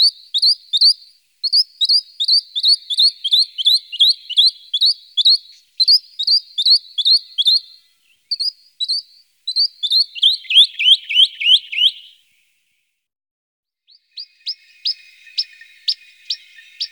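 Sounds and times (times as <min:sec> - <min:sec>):
western rock nuthatch: 0:00.0 - 0:12.2, 0:13.9 - 0:16.9.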